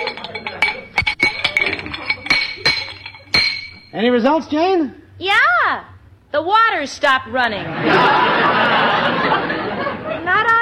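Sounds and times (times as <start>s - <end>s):
wrench tightening loose metal pipes: 0.0s - 4.1s
speech: 4.0s - 8.8s
laughter: 7.5s - 10.4s.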